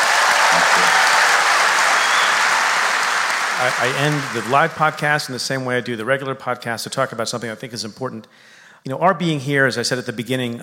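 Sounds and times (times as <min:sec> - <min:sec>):
big round of audience applause: 0:00.0 - 0:05.3
speech: 0:03.6 - 0:10.6.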